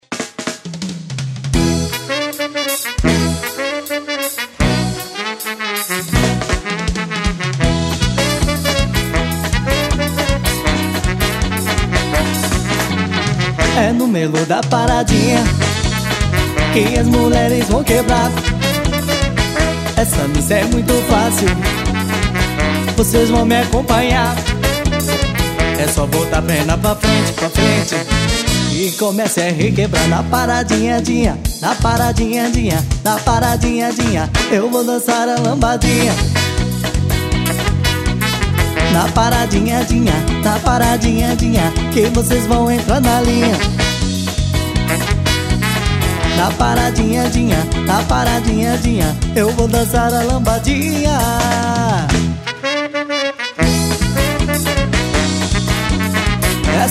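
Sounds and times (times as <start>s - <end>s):
swing music: 0.0s - 56.8s.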